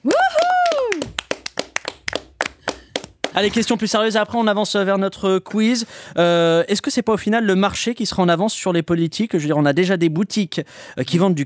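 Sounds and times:
rising-and-falling vocal whoop: 0:00.0 - 0:01.3
people clapping: 0:00.0 - 0:03.9
speech: 0:03.4 - 0:11.4.

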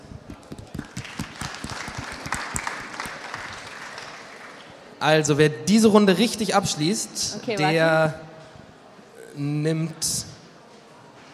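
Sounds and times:
audience applauding: 0:00.5 - 0:04.8
speech: 0:05.0 - 0:08.3, 0:09.4 - 0:10.3.

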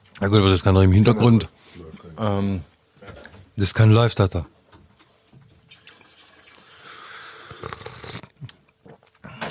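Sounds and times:
speech: 0:00.2 - 0:02.7, 0:03.6 - 0:04.6
water boiling in a kettle: 0:05.8 - 0:08.2.

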